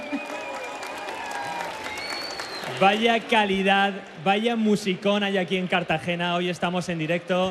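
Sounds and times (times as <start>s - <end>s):
live concert audience clapping in Cartagena: 0.0s - 4.9s
live concert audience cheering in Cartagena: 0.0s - 5.6s
speech: 2.7s - 7.4s.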